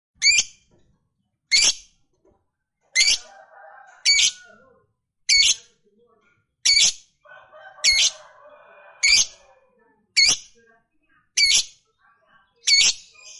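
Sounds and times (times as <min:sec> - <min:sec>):
fighter-type lovebird chattering in a rapid high buzzy trill: 0:00.2 - 0:00.6, 0:01.5 - 0:01.9, 0:03.0 - 0:03.3, 0:04.0 - 0:04.6, 0:05.3 - 0:05.7, 0:06.6 - 0:07.1, 0:07.8 - 0:08.2, 0:09.0 - 0:09.4, 0:10.2 - 0:10.6, 0:11.3 - 0:11.9, 0:12.5 - 0:13.3.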